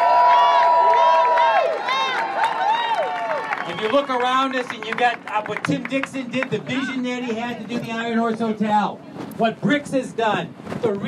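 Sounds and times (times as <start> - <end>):
crowd cheering and whooping: 0.0 - 4.3
audience clapping: 0.0 - 6.8
speech: 3.8 - 11.0.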